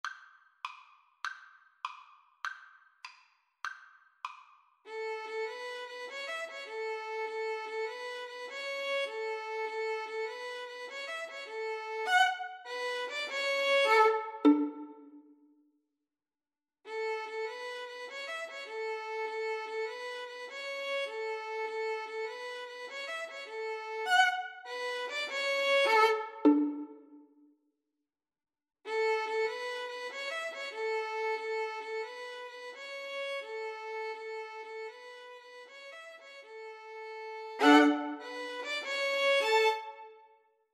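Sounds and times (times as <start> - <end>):
violin melody: 4.9 - 15.2, 16.9 - 27.2, 28.9 - 40.3.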